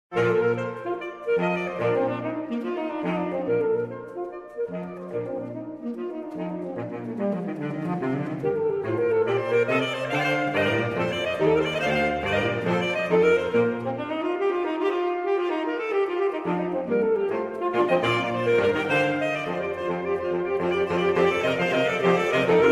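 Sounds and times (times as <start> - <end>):
saxophone: 0.1 - 22.7.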